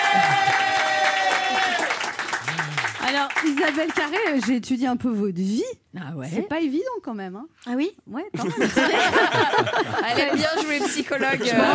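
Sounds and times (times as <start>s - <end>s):
studio audience of a French TV talk show applauding: 0.0s - 4.6s
speech: 3.4s - 11.7s
laughter: 8.4s - 11.7s.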